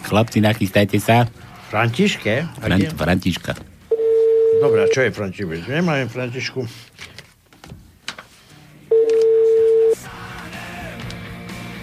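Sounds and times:
speech: 0.1s - 3.7s, 4.6s - 7.2s
telephone ringing: 3.9s - 5.1s, 8.9s - 10.1s.

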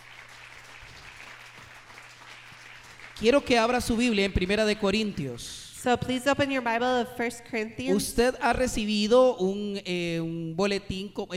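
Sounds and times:
church congregation applauding Christ Jesus: 0.0s - 5.4s
speech: 3.2s - 11.3s.

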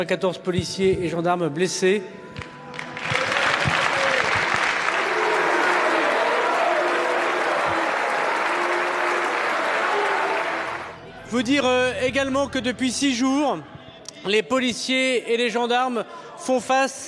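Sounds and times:
speech: 0.0s - 2.5s, 11.3s - 17.0s
crowd applause for police officers: 2.7s - 11.0s.

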